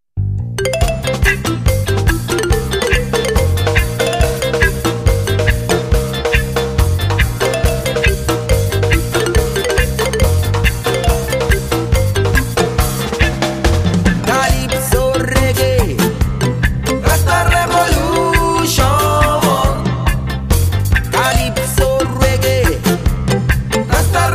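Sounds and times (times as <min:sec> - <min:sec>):
calypso reggae music: 0:00.4 - 0:24.3.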